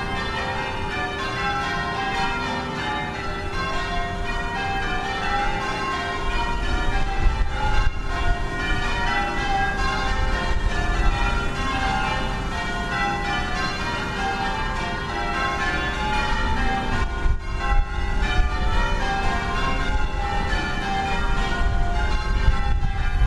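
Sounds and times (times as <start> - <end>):
bells ringing: 0.0 - 23.2.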